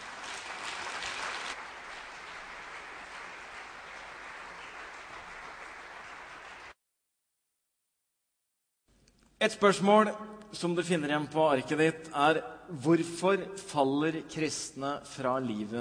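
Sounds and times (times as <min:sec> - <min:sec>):
applause: 0:00.0 - 0:06.8
speech: 0:09.4 - 0:15.7.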